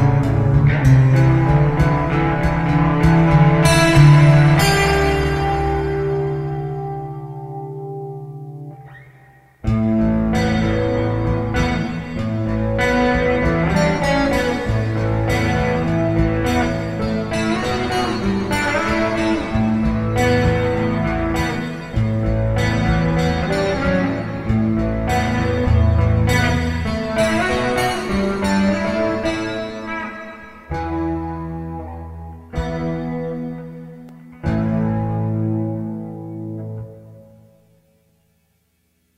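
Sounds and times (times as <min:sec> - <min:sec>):
12-tone equal temperament tuning tones in A: 0:00.0 - 0:38.2.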